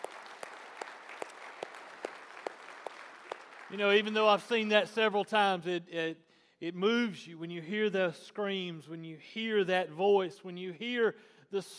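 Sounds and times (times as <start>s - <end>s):
audience applauding: 0.0s - 4.6s
speech: 3.7s - 11.7s.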